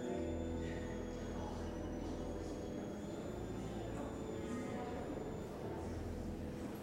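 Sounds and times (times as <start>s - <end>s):
cathedral organ: 0.0s - 6.7s.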